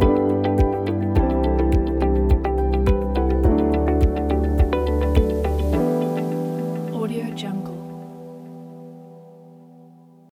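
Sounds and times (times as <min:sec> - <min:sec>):
ambient corporate music: 0:00.0 - 0:10.3.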